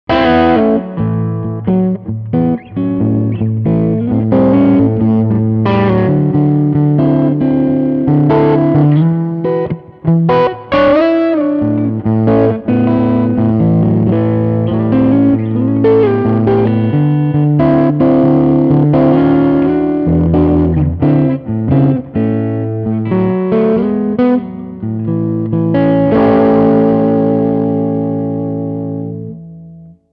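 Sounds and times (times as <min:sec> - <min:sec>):
blues music: 0:00.1 - 0:30.1.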